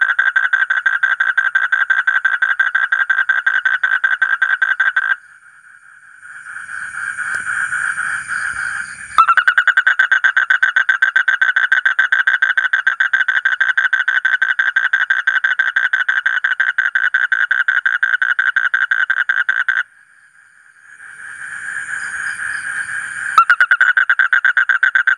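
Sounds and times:
Asian common toad trilling: 0.0s - 5.2s, 6.2s - 19.9s, 21.0s - 25.1s.

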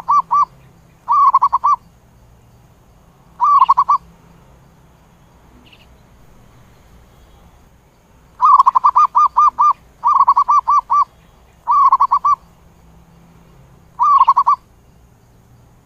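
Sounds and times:
zebra dove cooing: 0.0s - 0.5s, 1.1s - 1.8s, 3.4s - 4.0s, 8.4s - 12.4s, 14.0s - 14.7s.

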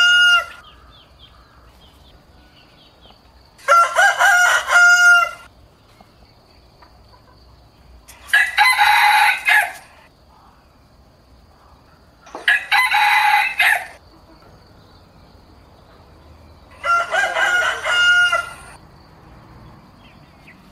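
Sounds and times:
rooster crowing: 0.0s - 1.0s, 3.6s - 5.5s, 8.2s - 10.0s, 12.3s - 14.0s, 16.7s - 18.8s.

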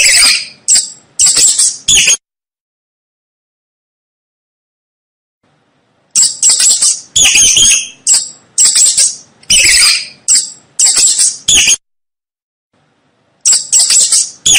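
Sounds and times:
mouse squeaking: 0.0s - 2.2s, 6.1s - 11.8s, 13.4s - 14.5s.

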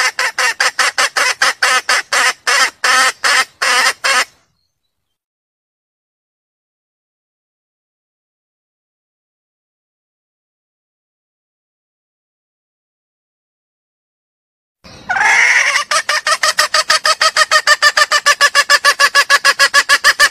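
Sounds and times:
junglefowl clucking: 0.0s - 4.4s, 14.9s - 20.2s.

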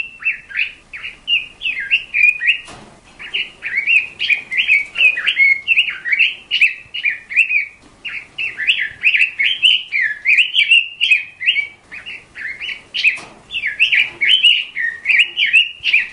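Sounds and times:
bird singing: 0.0s - 16.1s.

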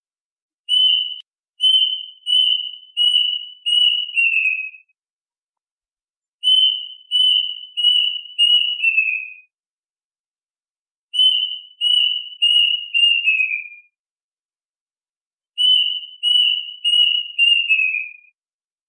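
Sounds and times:
duck whistled calls: 0.7s - 4.8s, 6.4s - 9.4s, 11.2s - 13.8s, 15.6s - 18.2s.

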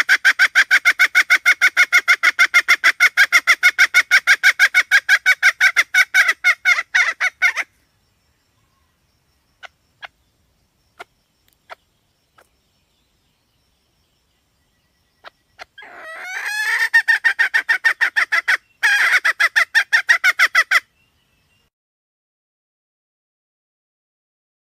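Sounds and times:
red junglefowl hen cackling: 0.0s - 7.8s, 11.0s - 11.8s, 15.2s - 20.9s
faint clicks: 11.4s - 11.7s.

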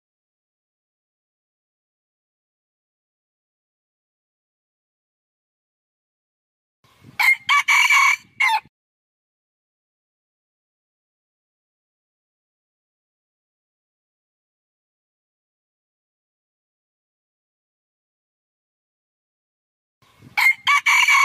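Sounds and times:
red junglefowl crowing: 7.2s - 8.7s, 20.4s - 21.2s.

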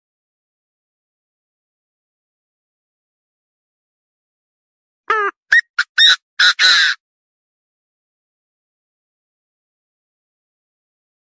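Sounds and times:
partridge calling: 5.1s - 7.0s.

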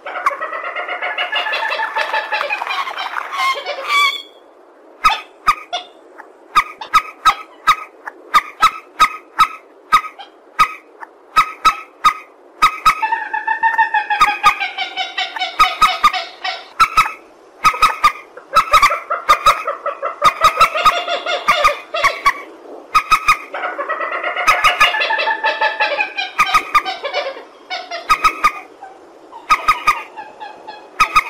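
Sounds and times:
purple swamphen cackling: 0.0s - 4.4s, 5.0s - 31.2s.

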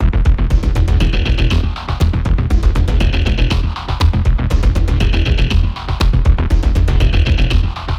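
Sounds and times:
short strong tense film background music: 0.0s - 7.9s.

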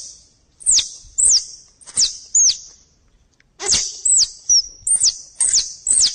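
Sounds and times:
squirrel chattering: 0.7s - 2.6s, 3.6s - 6.1s.

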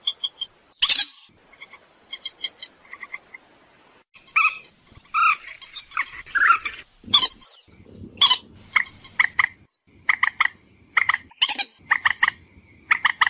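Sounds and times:
purple swamphen screeching and clucking: 4.2s - 13.2s.

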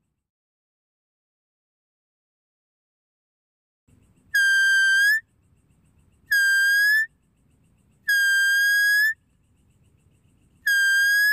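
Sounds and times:
deer whistles: 4.3s - 5.3s, 6.3s - 7.1s, 8.0s - 9.2s, 10.6s - 11.3s.

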